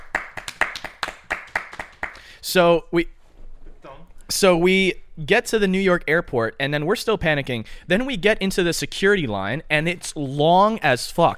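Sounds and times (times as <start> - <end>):
people clapping: 0.0 - 2.3
speech: 2.4 - 3.2, 4.3 - 11.3.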